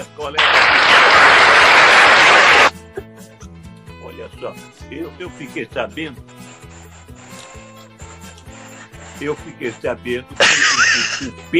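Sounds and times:
speech: 0.0s - 1.3s, 4.4s - 6.4s, 9.2s - 11.5s
round of applause: 0.4s - 2.7s
laughter: 10.4s - 11.4s.

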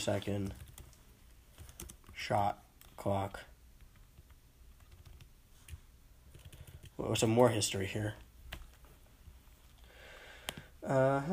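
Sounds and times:
speech: 0.0s - 0.6s, 2.2s - 3.5s, 7.0s - 8.2s, 10.8s - 11.3s
typing on a computer keyboard: 0.0s - 2.2s, 3.8s - 7.0s.

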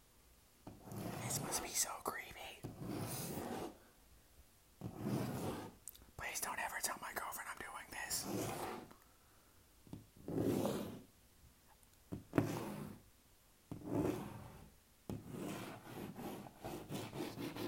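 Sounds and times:
hand scratching on objects: 0.7s - 3.8s, 4.8s - 6.4s, 7.2s - 8.9s, 10.2s - 11.1s, 12.3s - 13.0s, 13.7s - 17.6s.

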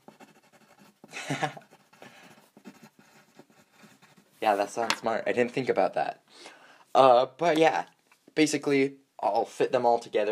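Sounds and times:
pen scratching handwritten notes: 0.0s - 5.0s
speech: 1.3s - 1.6s, 4.4s - 10.3s.

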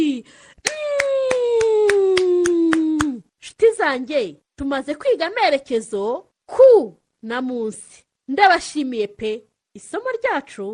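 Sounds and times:
speech: 0.0s - 0.5s, 3.8s - 10.7s
class or audience clapping on request: 0.6s - 3.2s.

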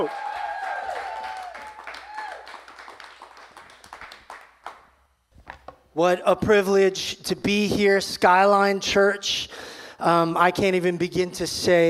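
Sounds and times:
speech: 0.0s - 0.2s, 6.0s - 11.8s
church audience applause: 0.0s - 4.8s.

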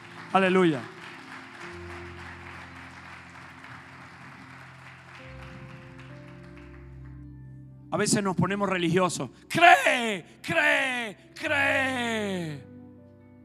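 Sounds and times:
applause: 0.0s - 7.3s
speech: 0.3s - 0.9s, 7.9s - 12.7s.

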